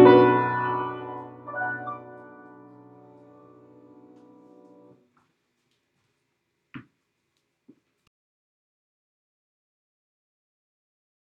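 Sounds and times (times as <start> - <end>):
instrumental music: 0.0 - 4.9.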